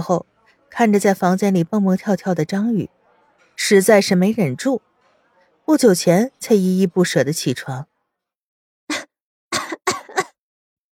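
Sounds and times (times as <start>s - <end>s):
speech: 0.0s - 3.0s, 3.6s - 4.9s, 5.7s - 7.9s
embarrassed dry breathy coughs: 8.9s - 10.4s.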